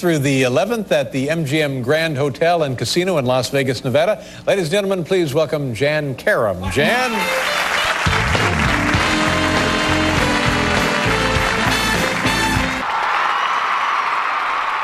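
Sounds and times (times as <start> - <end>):
speech: 0.0 - 7.7
studio audience applause: 6.9 - 14.8.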